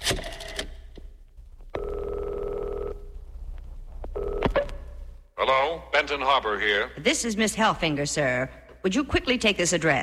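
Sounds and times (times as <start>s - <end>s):
telephone ringing: 1.8s - 3.1s, 4.2s - 4.7s
speech: 5.5s - 10.0s.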